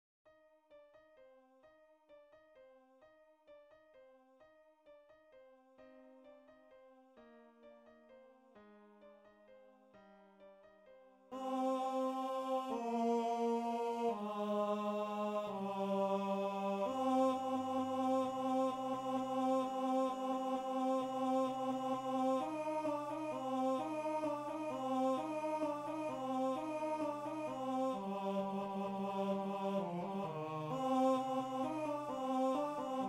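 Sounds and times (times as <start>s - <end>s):
TTBB male choir singing: 11.4s - 33.0s.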